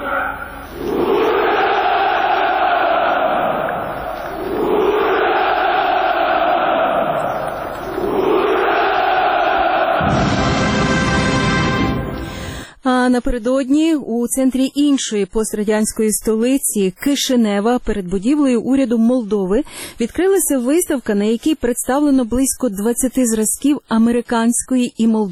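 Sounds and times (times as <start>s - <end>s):
crowd shouting Hurrah at a Victory Day celebration: 0.0s - 12.4s
speech: 13.1s - 25.3s.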